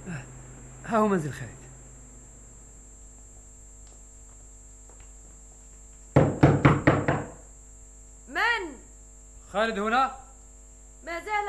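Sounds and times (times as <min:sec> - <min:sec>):
faint steady hum: 0:00.0 - 0:11.4
speech: 0:00.9 - 0:01.6, 0:09.6 - 0:10.2
firm knocks on a wooden door: 0:06.1 - 0:07.5.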